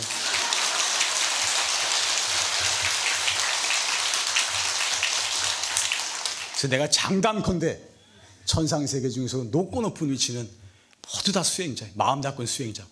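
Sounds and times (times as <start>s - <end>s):
audience applause: 0.0s - 6.7s
speech: 6.6s - 7.9s, 8.5s - 12.9s.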